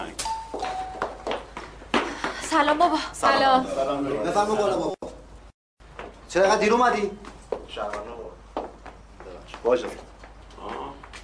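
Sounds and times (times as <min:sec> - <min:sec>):
two-tone doorbell chime in an Iranian film scene: 0:00.2 - 0:01.4
speech: 0:02.5 - 0:05.0, 0:06.3 - 0:08.2, 0:09.6 - 0:10.1.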